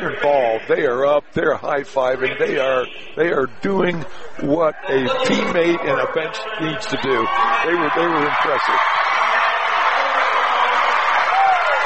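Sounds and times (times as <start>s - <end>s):
speech: 0.0s - 9.1s
applause: 7.3s - 11.8s.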